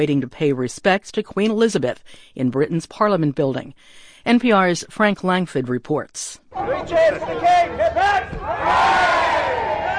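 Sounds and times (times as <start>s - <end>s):
speech: 0.0s - 9.2s
crowd cheering and calling out: 6.5s - 9.9s.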